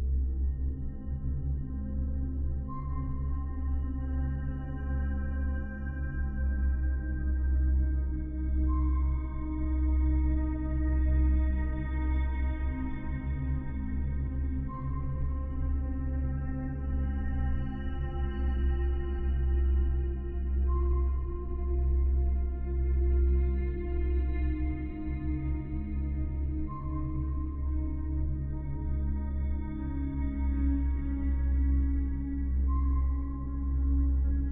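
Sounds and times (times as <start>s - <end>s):
sci-fi ambient music: 0.0s - 34.5s.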